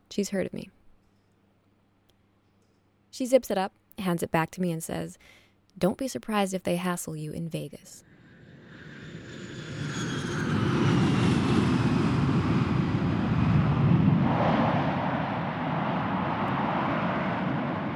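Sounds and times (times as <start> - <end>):
speech: 0.2 - 0.8, 3.2 - 8.1
airplane engine hum while waiting on tarmac: 8.0 - 17.9.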